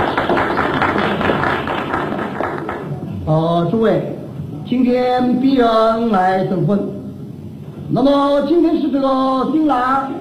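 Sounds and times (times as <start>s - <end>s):
audience clapping hands: 0.0s - 3.1s
speech: 3.3s - 7.0s, 7.9s - 10.1s.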